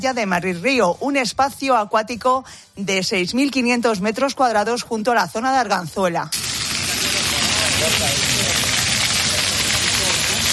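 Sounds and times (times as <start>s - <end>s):
speech: 0.0s - 6.6s, 7.8s - 8.4s
water jets spraying at an urban beach splash area: 6.3s - 10.5s
people murmuring: 6.5s - 10.5s.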